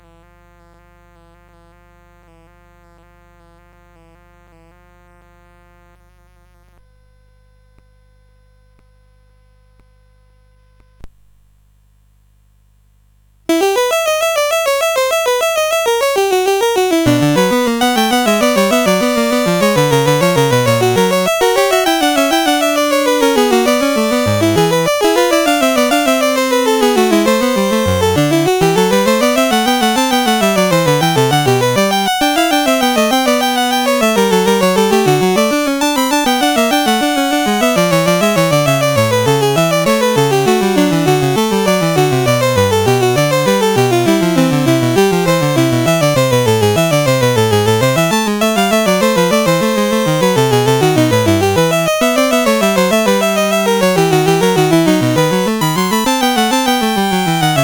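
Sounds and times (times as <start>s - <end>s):
fugue in E minor: 13.5s - 57.6s.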